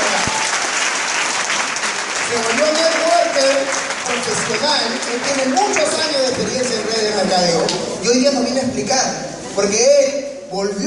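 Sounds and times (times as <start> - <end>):
audience applause: 0.0 - 7.7
speech: 2.3 - 10.8.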